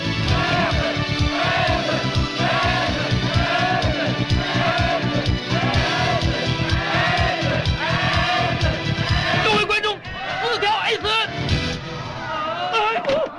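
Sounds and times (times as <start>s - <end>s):
crowd roaring and cheering: 0.2s - 13.3s.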